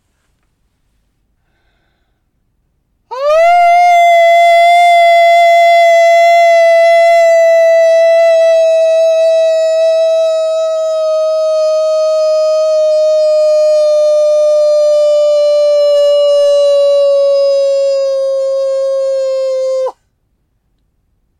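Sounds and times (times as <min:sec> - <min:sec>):
person howling like a wolf: 0:03.1 - 0:20.0.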